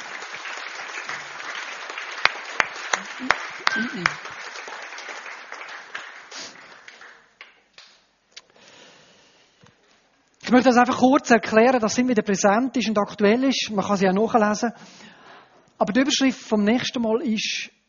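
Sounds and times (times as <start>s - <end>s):
audience applause: 0.0s - 7.9s
speech: 3.2s - 4.3s, 10.5s - 15.1s, 15.8s - 17.8s.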